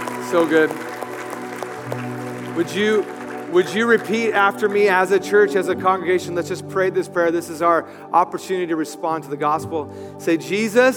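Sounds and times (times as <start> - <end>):
church audience clapping: 0.0 - 5.8
speech: 0.3 - 0.9, 1.9 - 10.9.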